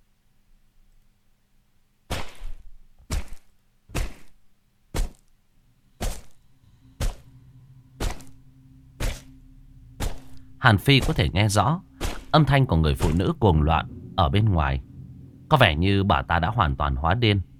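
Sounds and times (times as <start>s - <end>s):
knife hacking into a door: 2.1s - 4.3s, 6.0s - 6.3s, 9.0s - 9.3s, 10.0s - 10.4s, 12.0s - 12.4s
speech: 10.6s - 14.9s, 15.5s - 17.5s.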